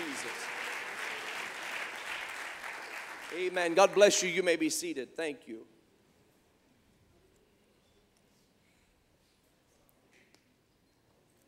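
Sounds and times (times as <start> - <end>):
audience clapping hands: 0.0 - 4.4
speech: 3.3 - 5.7.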